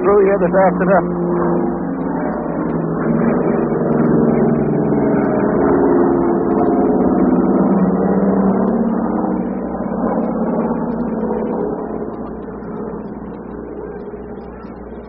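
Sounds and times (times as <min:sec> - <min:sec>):
airplane flying directly overhead: 0:00.0 - 0:15.0
speech: 0:00.1 - 0:01.2.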